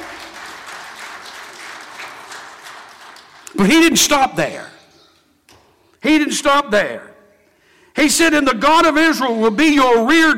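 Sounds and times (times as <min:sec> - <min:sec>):
audience clapping hands: 0:00.0 - 0:04.2
speech: 0:03.5 - 0:04.8, 0:06.0 - 0:07.1, 0:08.0 - 0:10.3.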